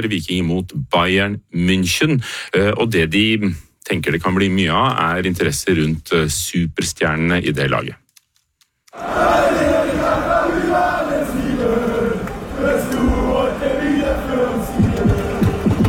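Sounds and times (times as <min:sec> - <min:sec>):
speech: 0:00.0 - 0:08.0, 0:09.0 - 0:10.2
Bayern München football supporters singing loudly before away match: 0:09.0 - 0:15.8.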